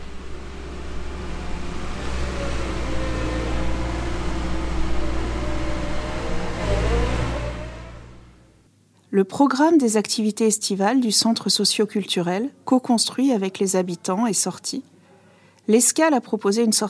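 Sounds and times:
construction machinery engines: 0:00.0 - 0:08.6
speech: 0:09.2 - 0:14.9, 0:15.7 - 0:16.8.

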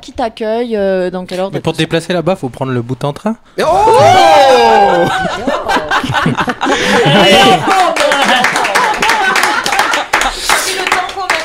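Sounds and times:
speech: 0:00.0 - 0:08.8
laughter: 0:04.4 - 0:11.1
clapping: 0:07.6 - 0:11.4.

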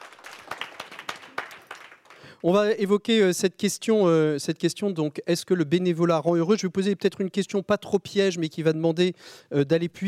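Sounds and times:
crowd clapping: 0:00.0 - 0:02.4
speech: 0:02.4 - 0:10.0.

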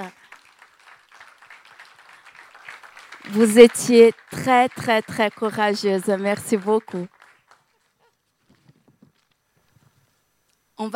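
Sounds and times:
audience applause: 0:00.0 - 0:08.0
speech: 0:03.3 - 0:07.2, 0:10.8 - 0:10.9.

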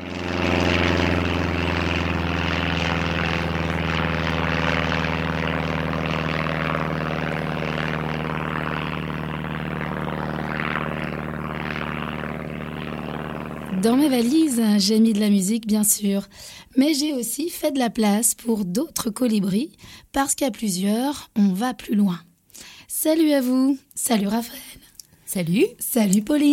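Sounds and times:
propeller airplane taking off: 0:00.0 - 0:15.3
speech: 0:13.8 - 0:26.5.

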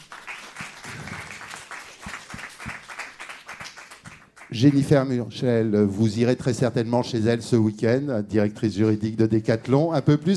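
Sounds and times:
audience applause: 0:00.0 - 0:04.5
speech: 0:04.5 - 0:10.3.

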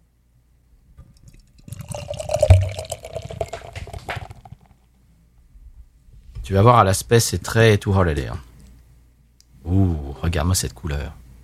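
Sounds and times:
beer being poured into a glass: 0:01.3 - 0:04.7
speech: 0:06.5 - 0:08.5, 0:09.7 - 0:11.2.

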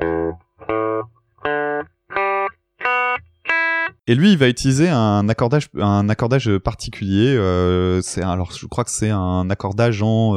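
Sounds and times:
six open strings of electric guitar in standard tuning: 0:00.0 - 0:04.0
speech: 0:04.1 - 0:10.3.

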